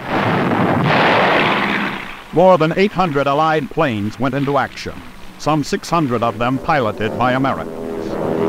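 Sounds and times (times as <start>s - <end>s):
artillery guns firing: 0.0s - 5.5s
speech: 2.4s - 7.8s.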